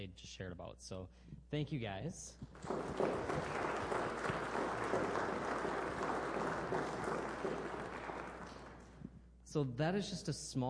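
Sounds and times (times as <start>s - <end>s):
speech: 0.0s - 3.9s, 9.5s - 10.6s
audience applause: 2.6s - 9.0s.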